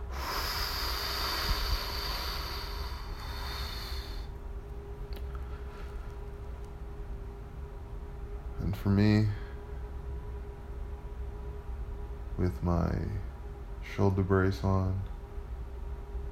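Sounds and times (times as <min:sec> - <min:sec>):
forceful exhaling of breath: 0:00.0 - 0:04.3
low steady hum: 0:00.0 - 0:16.2
speech: 0:08.8 - 0:09.4, 0:12.4 - 0:15.1.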